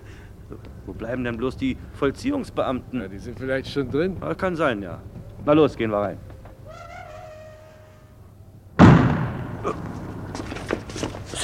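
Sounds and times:
speech: 0.5 - 6.3
gunshot-like bang in a German radio play: 8.8 - 10.4.

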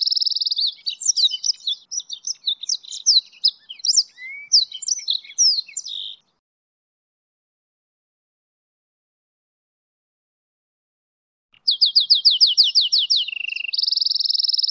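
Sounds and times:
goldfinch and canary hybrid singing a high varied warble: 0.0 - 6.4, 11.6 - 14.6.

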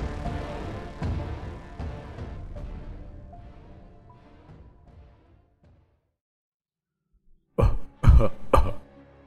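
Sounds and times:
thick phlegmy cough: 7.6 - 8.8.

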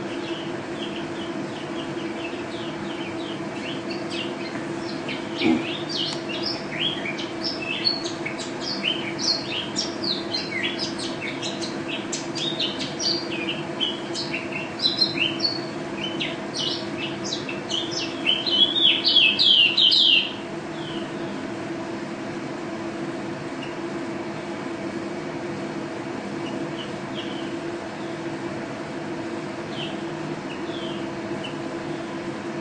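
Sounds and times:
low background hum: 0.0 - 32.5
white-eye chirping and twittering: 0.1 - 21.4, 26.4 - 28.2, 29.7 - 32.2.

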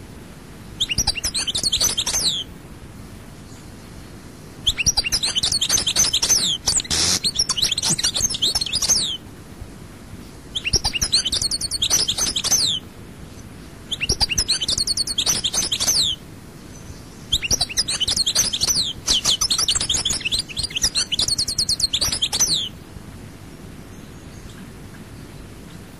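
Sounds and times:
European goldfinch twittering song: 0.8 - 2.5, 4.6 - 9.2, 10.5 - 12.8, 13.9 - 16.2, 16.8 - 22.7.

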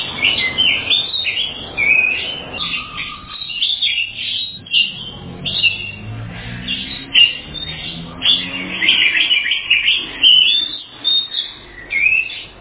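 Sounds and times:
Oriental magpie-robin whistled phrases: 0.0 - 6.1, 6.7 - 12.5.

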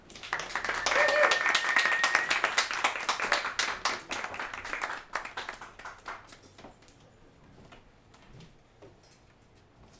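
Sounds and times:
audience applause welcoming a writer at an open mic reading: 0.0 - 6.4.

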